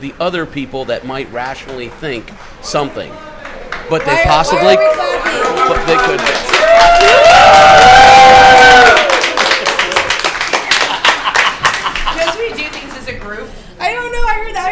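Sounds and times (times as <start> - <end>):
speech: 0.0 - 3.3, 3.9 - 9.1
crowd clapping: 1.4 - 13.4
cheering and whooping voices: 4.1 - 10.2
laughter: 9.8 - 12.8.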